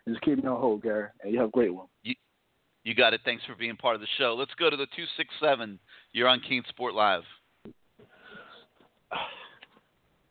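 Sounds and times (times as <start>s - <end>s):
speech: 0.1s - 2.2s, 2.8s - 7.8s, 9.1s - 9.4s
caller breathing on a sports radio call-in phone line: 8.1s - 8.7s
sniff: 8.1s - 8.7s.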